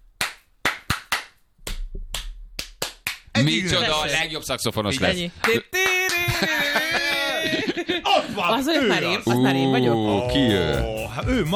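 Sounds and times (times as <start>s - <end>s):
hands clapping a rhythm back: 0.1s - 4.0s, 4.6s - 7.7s, 10.1s - 11.5s
speech: 3.4s - 11.5s
laughter: 5.9s - 11.5s.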